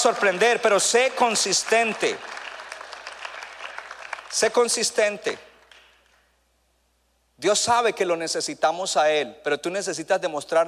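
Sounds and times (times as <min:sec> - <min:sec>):
speech: 0:00.0 - 0:02.4, 0:04.3 - 0:05.5, 0:07.4 - 0:10.6
audience applauding: 0:00.0 - 0:04.8.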